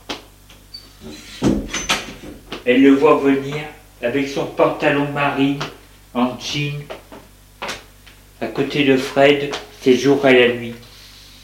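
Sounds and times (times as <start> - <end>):
door opening: 0.8 - 2.6
speech: 2.6 - 7.0, 8.5 - 10.8.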